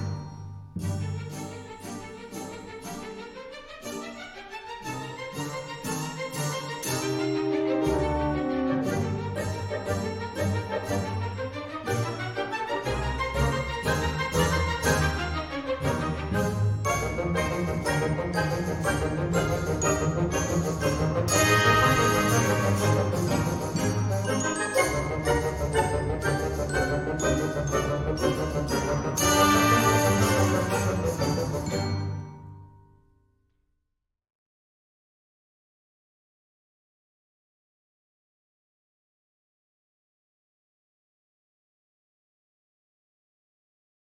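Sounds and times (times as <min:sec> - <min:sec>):
galop music: 0:00.0 - 0:32.6.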